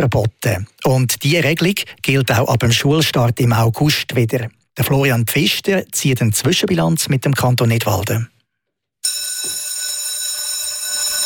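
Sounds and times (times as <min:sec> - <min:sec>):
speech: 0:00.0 - 0:08.3
school bell ringing: 0:09.0 - 0:11.2.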